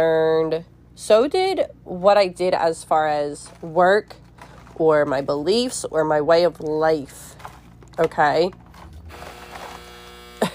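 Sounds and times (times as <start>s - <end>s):
speech: 0.0s - 4.2s, 4.8s - 7.4s, 8.0s - 9.3s
home washing machine buzzer: 9.1s - 10.5s.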